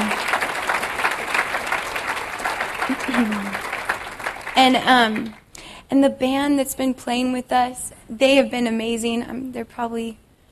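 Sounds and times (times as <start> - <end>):
audience applause: 0.0 - 5.5
speech: 3.2 - 3.5, 4.6 - 10.2.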